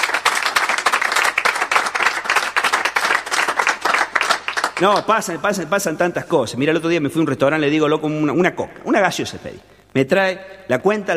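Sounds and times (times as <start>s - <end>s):
audience applause: 0.0s - 5.2s
speech: 4.8s - 11.1s.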